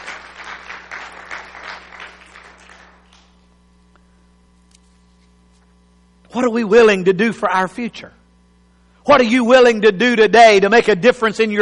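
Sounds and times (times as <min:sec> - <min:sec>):
audience clapping: 0:00.0 - 0:03.5
speech: 0:06.3 - 0:08.2, 0:09.0 - 0:11.6.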